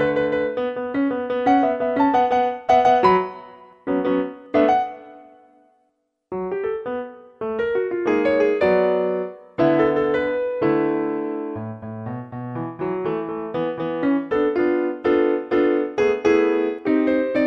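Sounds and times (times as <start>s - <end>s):
piano part of a trumpet sonata: 0.0s - 17.4s.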